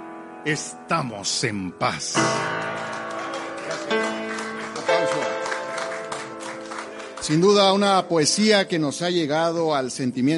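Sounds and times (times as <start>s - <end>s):
speech: 0.4s - 3.0s, 7.2s - 10.3s
audience applause: 2.4s - 8.1s.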